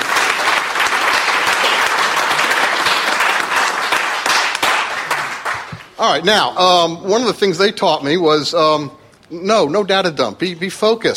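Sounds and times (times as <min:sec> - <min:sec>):
crowd applauding: 0:00.0 - 0:06.0
speech: 0:06.0 - 0:11.1.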